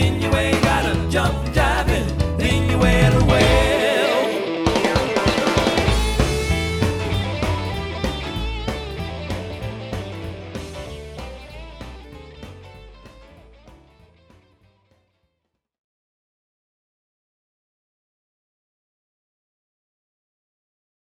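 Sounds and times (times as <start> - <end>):
variety band playing: 0.0 - 14.2.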